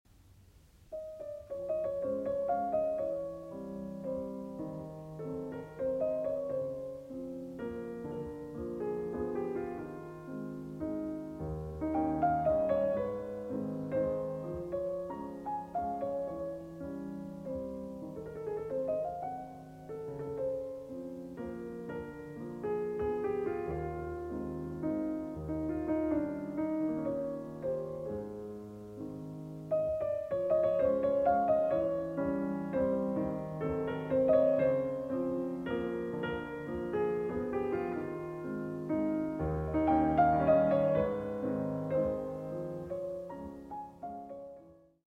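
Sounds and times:
waltz moderato in B minor: 1.0s - 44.8s.

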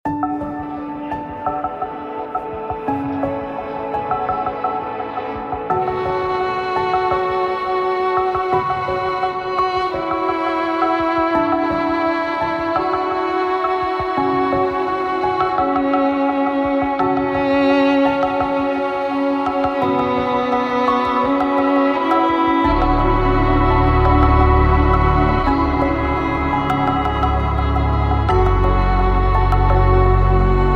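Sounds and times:
violin: 0.1s - 30.7s.

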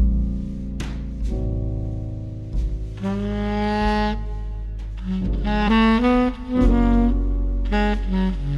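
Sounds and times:
relaxing jazz music: 0.0s - 8.5s.

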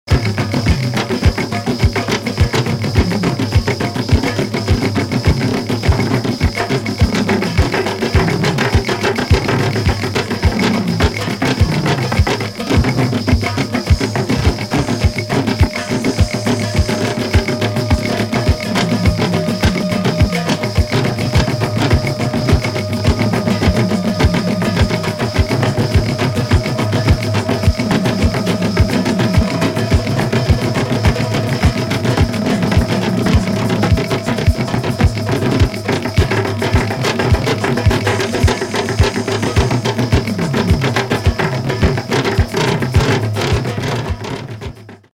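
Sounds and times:
trance drums: 0.0s - 45.1s.

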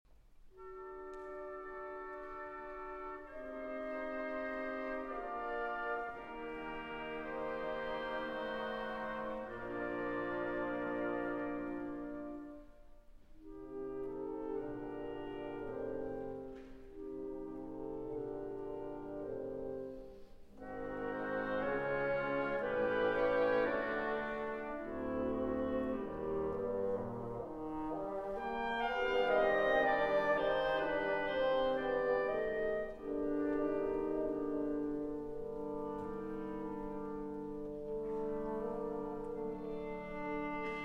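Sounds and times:
violin and orchestra playing an andante: 0.2s - 40.8s.

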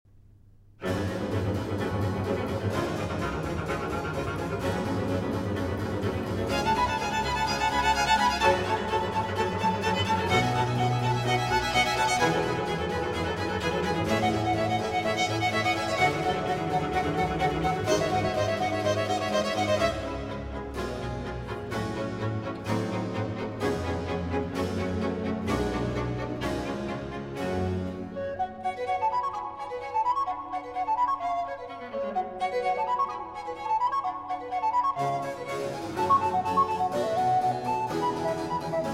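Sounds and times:
flute concerto in G minor: 0.8s - 38.9s.

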